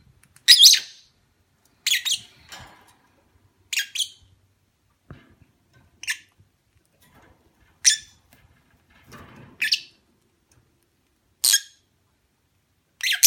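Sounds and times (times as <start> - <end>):
lovebird mating call chirps: 0.4 - 1.1, 1.8 - 2.3, 3.7 - 4.3, 13.0 - 13.2.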